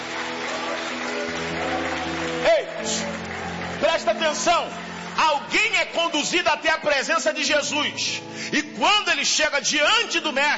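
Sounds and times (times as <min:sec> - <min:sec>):
audience applauding: 0:00.0 - 0:07.7
speech: 0:04.1 - 0:10.5.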